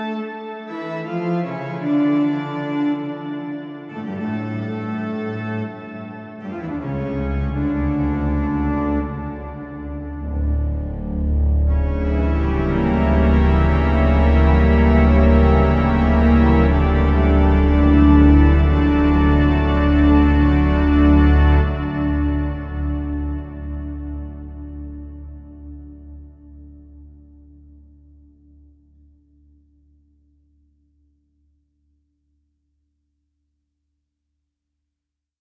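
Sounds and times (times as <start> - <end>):
organ through Sony DRE 2000 and DPS R7 Taj Mahal reverb: 0.7 - 26.7.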